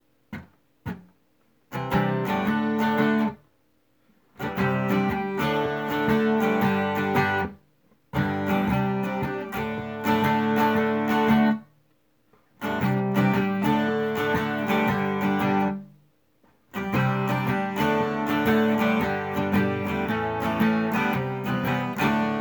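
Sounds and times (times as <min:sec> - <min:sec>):
acoustic music: 0:01.8 - 0:03.4, 0:04.4 - 0:07.6, 0:08.2 - 0:11.7, 0:12.6 - 0:15.9, 0:16.8 - 0:22.3.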